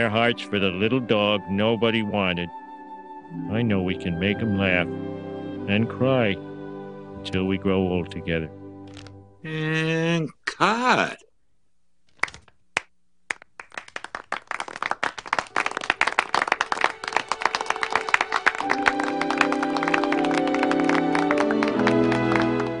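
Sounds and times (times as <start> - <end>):
speech: 0.0 - 2.6, 3.3 - 6.5, 7.2 - 8.6, 9.4 - 11.3
audience clapping: 12.1 - 22.7.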